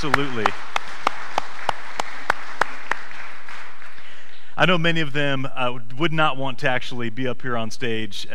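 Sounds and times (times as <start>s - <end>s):
speech: 0.0s - 0.7s, 4.6s - 8.3s
audience applause: 0.0s - 4.2s.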